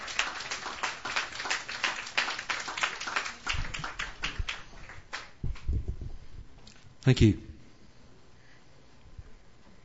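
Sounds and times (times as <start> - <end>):
audience applause at an open mic night welcoming a performer: 0.0 - 5.4
speech: 7.1 - 7.5.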